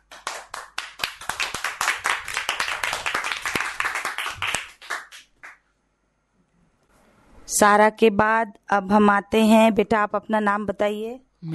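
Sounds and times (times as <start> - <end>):
audience applause: 0.0 - 5.6
speech: 7.5 - 11.5.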